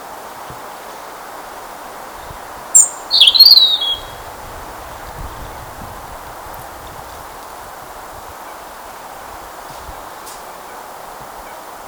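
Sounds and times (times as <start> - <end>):
background hiss: 0.0 - 11.8
European robin singing: 2.2 - 4.3.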